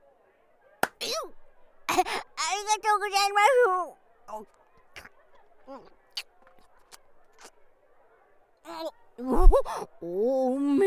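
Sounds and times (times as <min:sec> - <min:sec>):
slap on the face of a toilet-girl character in a role-play: 0:00.8 - 0:01.0
speech: 0:02.0 - 0:04.6, 0:05.7 - 0:06.0, 0:08.7 - 0:10.8.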